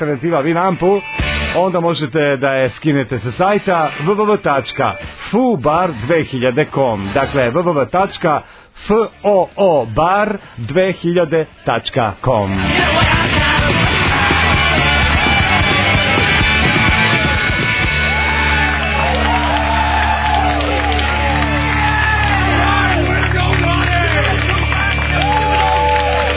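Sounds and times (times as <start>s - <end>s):
speech: 0.0s - 13.3s
crowd cheering and yelling: 12.5s - 26.3s
overlapping shouts and whoops: 13.7s - 26.3s.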